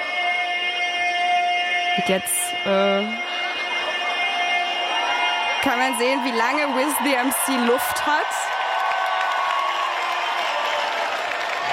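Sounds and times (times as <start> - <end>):
concert audience singing: 0.0 - 8.5
concert audience roaring and cheering: 0.0 - 11.7
speech: 2.0 - 3.5, 5.6 - 8.6.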